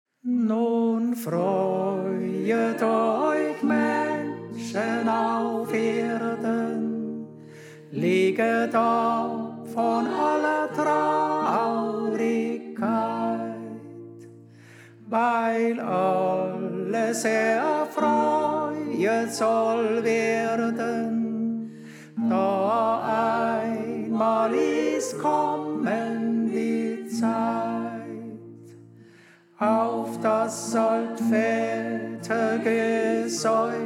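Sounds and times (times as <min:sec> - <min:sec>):
tenor singing: 0:00.2 - 0:14.2, 0:15.0 - 0:28.7, 0:29.5 - 0:33.8.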